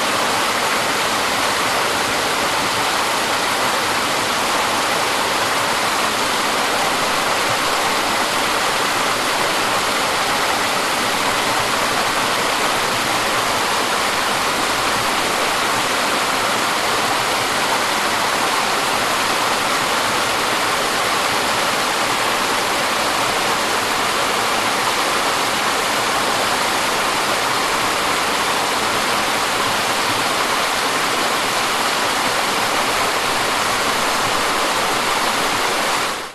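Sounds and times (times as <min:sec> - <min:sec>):
medium waterfall in a forest 10m distance: 0:00.0 - 0:36.3.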